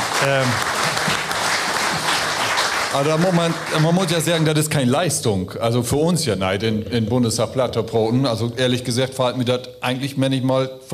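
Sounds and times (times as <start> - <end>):
applause in the Bundestag: 0.0 - 4.7
speech: 0.2 - 0.8, 2.9 - 10.9.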